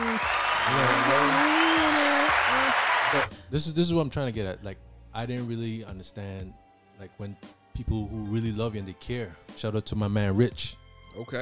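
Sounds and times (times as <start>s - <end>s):
applause: 0.0s - 3.4s
speech: 3.1s - 11.4s.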